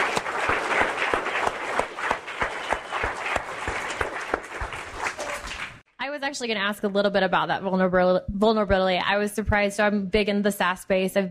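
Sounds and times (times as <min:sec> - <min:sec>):
audience applause: 0:00.0 - 0:05.8
speech: 0:06.3 - 0:11.3.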